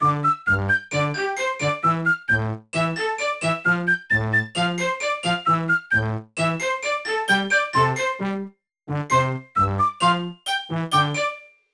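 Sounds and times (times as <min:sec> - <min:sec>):
music training: 0:00.0 - 0:11.6.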